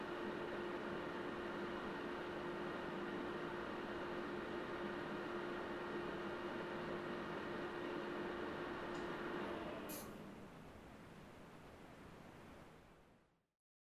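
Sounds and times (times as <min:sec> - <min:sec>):
PC operating noise switching on and off: 0:00.0 - 0:10.2.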